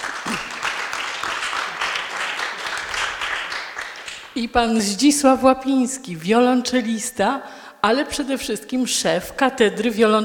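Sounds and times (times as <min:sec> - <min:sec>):
audience applause: 0:00.0 - 0:04.4
speech: 0:04.4 - 0:10.2.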